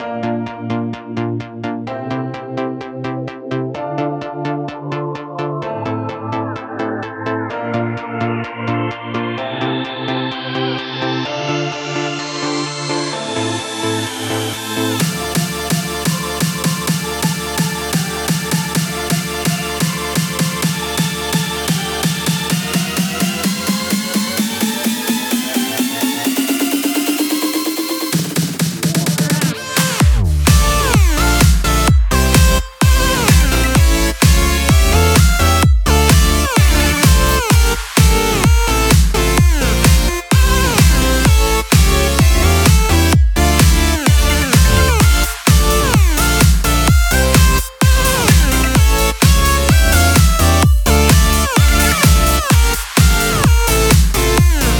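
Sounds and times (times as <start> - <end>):
electronic dance music: 0.0 - 54.7.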